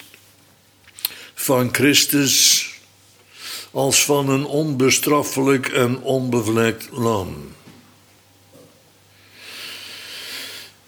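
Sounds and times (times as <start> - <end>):
speech: 1.5 - 2.7, 3.7 - 7.7
man giving a Bible talk taking a deep breath: 9.2 - 10.8.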